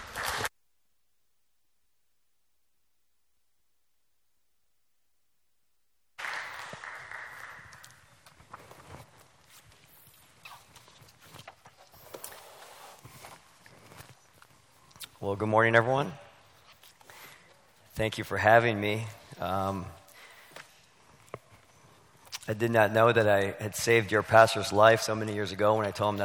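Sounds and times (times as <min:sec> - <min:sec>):
church congregation applauding to welcome a preacher: 0:06.2 - 0:08.9
speech: 0:15.3 - 0:16.2, 0:18.0 - 0:20.0, 0:22.5 - 0:26.2.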